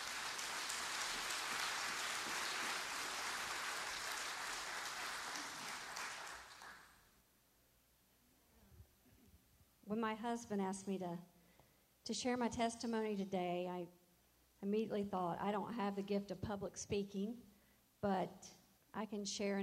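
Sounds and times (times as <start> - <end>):
audience applause welcoming a speaker to the pulpit during a church service: 0.0 - 7.0
speech: 9.9 - 11.3, 12.0 - 14.0, 14.6 - 19.6.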